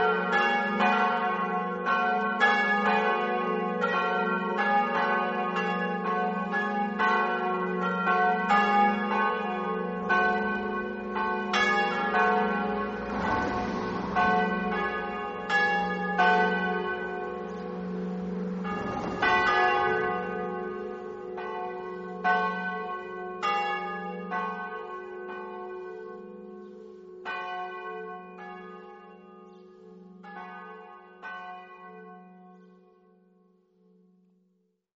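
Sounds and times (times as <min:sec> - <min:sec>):
bells ringing: 0:00.0 - 0:32.2.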